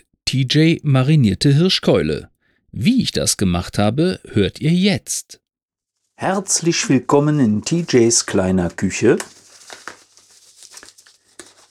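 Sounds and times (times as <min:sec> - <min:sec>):
speech: 0:00.3 - 0:05.4, 0:06.2 - 0:09.4
putting on gloves, crinkling: 0:05.8 - 0:11.7.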